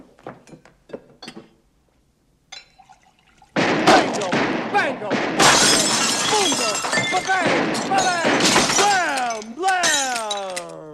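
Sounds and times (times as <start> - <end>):
glasses clinking while mixing a drink: 2.5 - 3.2, 5.4 - 10.8
speech: 4.2 - 8.7.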